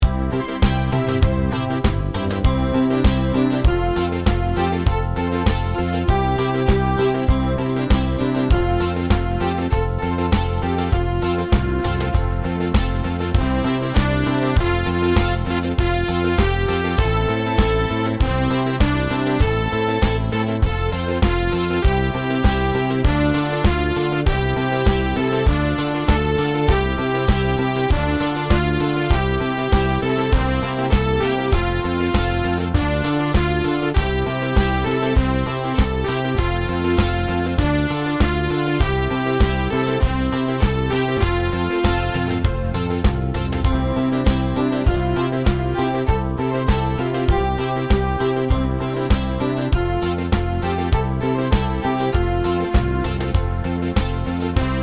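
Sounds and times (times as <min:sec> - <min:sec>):
music beat: 0:00.0 - 0:54.8.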